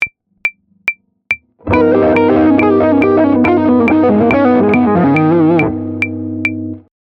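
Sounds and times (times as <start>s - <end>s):
musical lick: 1.6s - 6.6s.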